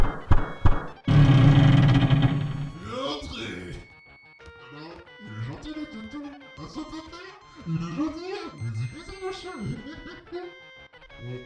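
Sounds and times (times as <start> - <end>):
knocking on the boss's door: 0.0 - 2.8
speech: 11.2 - 11.4.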